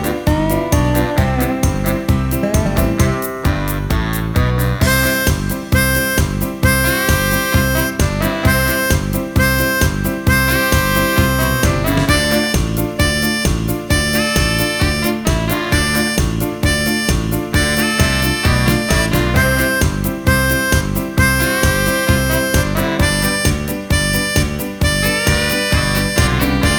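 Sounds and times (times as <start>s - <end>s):
blues harmonica: 0.0s - 26.7s.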